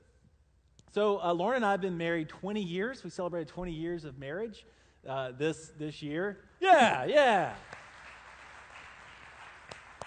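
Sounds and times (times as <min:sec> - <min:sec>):
speech: 0:01.0 - 0:07.8
audience applause: 0:07.5 - 0:10.0.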